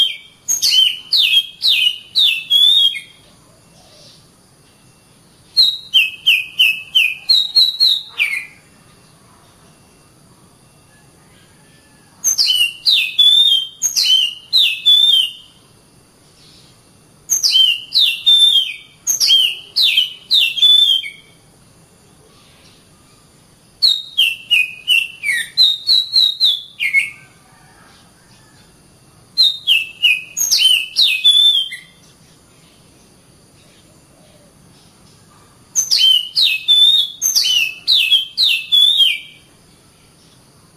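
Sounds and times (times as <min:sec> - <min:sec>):
Oriental magpie-robin song: 0:00.0 - 0:04.2, 0:05.5 - 0:08.7, 0:12.2 - 0:15.5, 0:17.3 - 0:21.4, 0:23.8 - 0:27.2, 0:29.4 - 0:32.2, 0:35.7 - 0:39.5.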